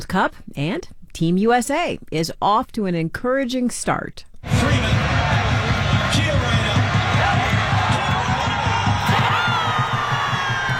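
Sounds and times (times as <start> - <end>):
speech: 0.0 - 4.9
crowd cheering at a public viewing at Skyline Park in downtown Denver: 4.4 - 10.7.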